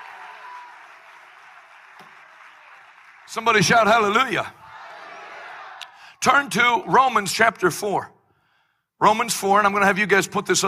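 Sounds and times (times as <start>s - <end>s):
audience clapping hands: 0.0s - 6.0s
speech: 3.3s - 4.6s, 6.2s - 8.2s, 9.0s - 10.6s.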